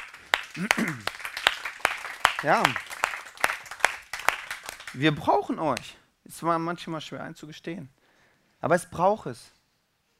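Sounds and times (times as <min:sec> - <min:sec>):
audience applause with sharper claps: 0:00.0 - 0:05.0
speech: 0:00.6 - 0:01.2, 0:02.4 - 0:02.9, 0:05.0 - 0:08.0, 0:08.6 - 0:09.6.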